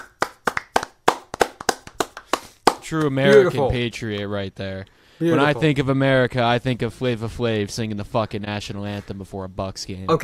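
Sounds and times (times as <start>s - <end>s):
audience clapping hands: 0.0s - 3.5s
speech: 2.9s - 10.2s.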